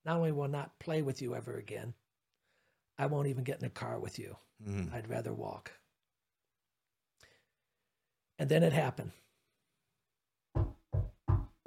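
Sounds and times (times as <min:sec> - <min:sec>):
speech: 0:00.0 - 0:02.0, 0:03.0 - 0:05.8, 0:08.4 - 0:09.2
knocking on a door: 0:10.5 - 0:11.6.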